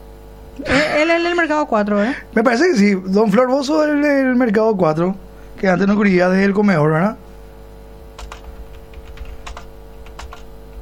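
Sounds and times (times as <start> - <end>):
low hum: 0.0 - 10.8
speech: 0.6 - 7.2
typing on a computer keyboard: 8.1 - 10.8.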